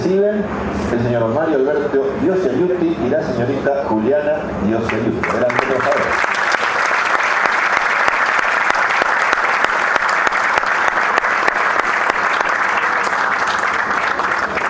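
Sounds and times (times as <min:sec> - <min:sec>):
speech: 0:00.1 - 0:06.3
audience applause for award recipients: 0:04.9 - 0:14.6.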